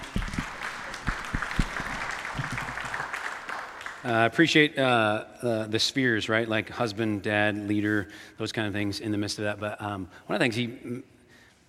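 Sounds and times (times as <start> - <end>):
group applauding: 0.0 - 4.3
speech: 4.0 - 11.1.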